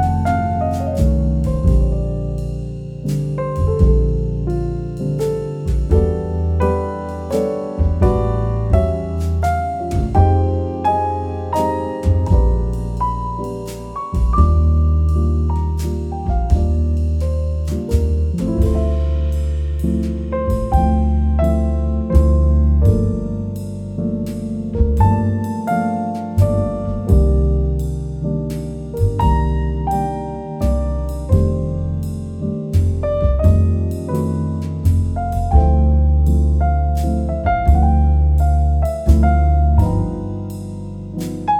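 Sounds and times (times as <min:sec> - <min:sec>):
cozy relaxing jazz music: 0:00.0 - 0:41.5.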